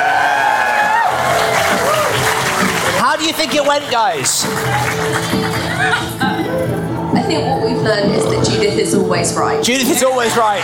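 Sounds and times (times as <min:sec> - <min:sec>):
studio audience clapping for two guests: 0:00.0 - 0:06.6, 0:10.1 - 0:10.6
speech: 0:03.2 - 0:06.2, 0:07.3 - 0:10.6.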